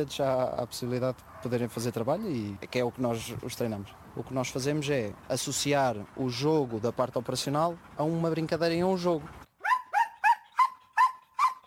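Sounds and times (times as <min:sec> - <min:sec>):
speech: 0:00.0 - 0:09.4
high-energy working dogs trained for operational tasks barking: 0:01.2 - 0:01.7, 0:09.6 - 0:11.6.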